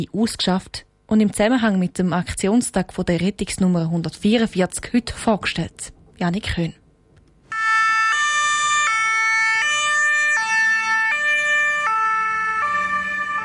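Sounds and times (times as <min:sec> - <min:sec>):
speech: 0:00.0 - 0:06.8
ambulance siren on emergency call: 0:07.5 - 0:13.4.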